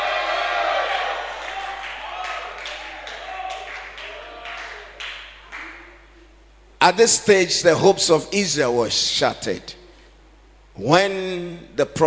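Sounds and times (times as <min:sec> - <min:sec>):
crowd shouting: 0:00.0 - 0:05.0
speech: 0:06.8 - 0:09.8, 0:10.8 - 0:12.0.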